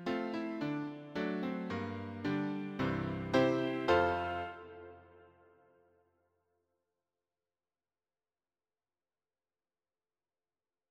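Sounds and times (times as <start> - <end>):
piano hymn accompaniment for church and sunday school music: 0.0 - 5.3.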